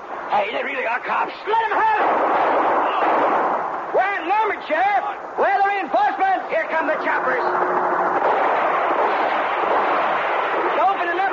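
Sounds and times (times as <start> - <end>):
speech: 0.3 - 8.7
heavy gunfire: 1.8 - 3.7, 7.5 - 11.3.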